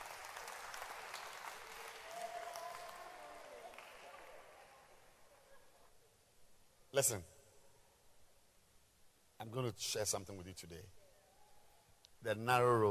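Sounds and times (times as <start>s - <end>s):
crowd applauding: 0.0s - 5.2s
speech: 7.0s - 7.3s, 9.4s - 11.0s, 12.2s - 12.8s.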